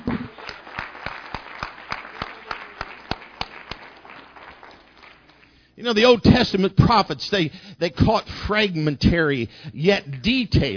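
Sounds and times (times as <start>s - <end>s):
audience clapping hands: 0.0s - 5.8s
speech: 5.8s - 10.7s.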